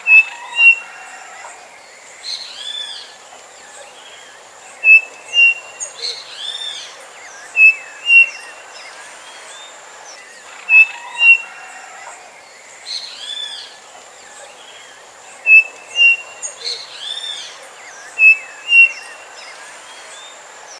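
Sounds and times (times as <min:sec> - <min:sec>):
bird giving high whistled notes: 0:00.0 - 0:00.9, 0:04.8 - 0:06.6, 0:07.5 - 0:08.6, 0:10.6 - 0:11.5, 0:15.5 - 0:17.4, 0:18.1 - 0:19.2
faint chirps: 0:00.0 - 0:20.7
steady hiss: 0:00.0 - 0:20.7.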